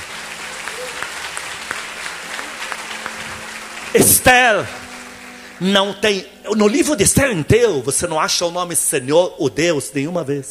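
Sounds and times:
crowd applauding: 0.0s - 7.4s
speech: 3.9s - 4.8s, 5.6s - 10.5s.

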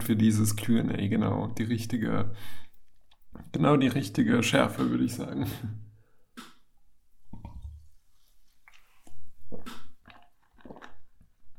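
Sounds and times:
speech: 0.1s - 2.6s, 3.5s - 5.8s
person drinking water: 6.0s - 11.5s.

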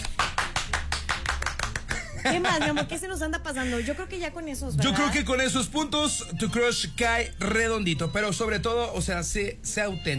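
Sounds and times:
hand clapping applause: 0.0s - 2.4s
laughter: 1.9s - 3.1s
speech: 2.2s - 10.1s.

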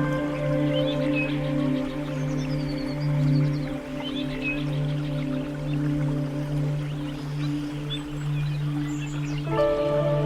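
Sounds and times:
calm zen music low humming drone: 0.0s - 10.2s.

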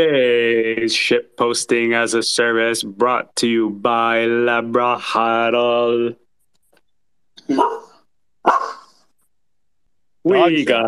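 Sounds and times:
speech: 0.0s - 6.2s, 7.5s - 8.8s, 10.2s - 10.8s
dog barking: 7.5s - 8.9s.

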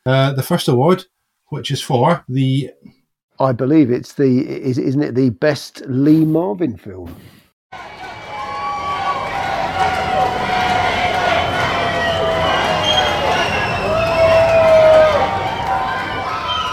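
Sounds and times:
speech: 0.0s - 7.9s
studio audience cheering and shouting: 7.8s - 16.7s
high whistles: 8.2s - 16.7s.

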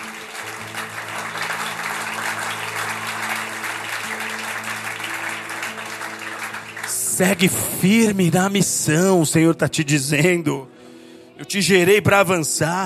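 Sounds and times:
audience applauding: 0.0s - 8.6s
speech: 7.2s - 10.7s, 11.4s - 12.8s.

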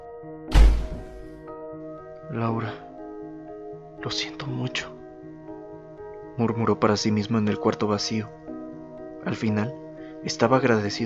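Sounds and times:
door slamming shut: 0.5s - 1.4s
speech: 2.3s - 2.9s, 4.0s - 5.0s, 6.4s - 8.4s, 9.2s - 11.0s.

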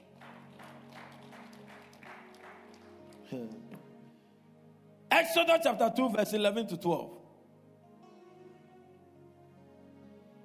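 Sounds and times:
audience clapping: 0.0s - 3.8s
speech: 3.3s - 3.8s, 5.2s - 7.2s.

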